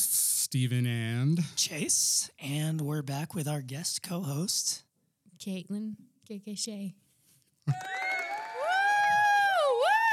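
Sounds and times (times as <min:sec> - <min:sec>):
speech: 0:00.0 - 0:07.0, 0:07.7 - 0:08.0
live audience whooping cheers: 0:07.7 - 0:10.1.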